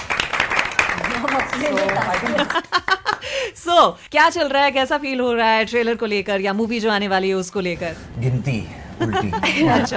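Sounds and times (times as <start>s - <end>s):
applause for the team: 0.0s - 2.7s
speech: 1.5s - 9.9s.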